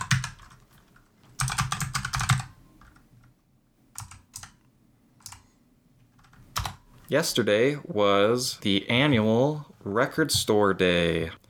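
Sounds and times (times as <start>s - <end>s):
typing on a computer keyboard: 0.0s - 3.3s, 3.9s - 5.5s, 6.1s - 6.9s
speech: 7.1s - 11.4s.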